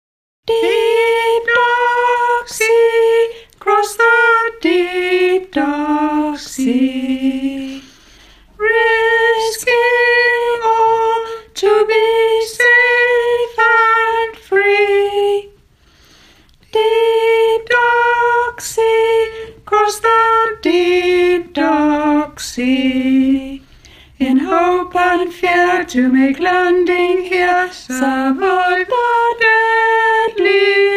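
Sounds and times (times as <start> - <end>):
soprano singing: 0.5 - 7.9, 8.6 - 15.6, 16.6 - 30.9.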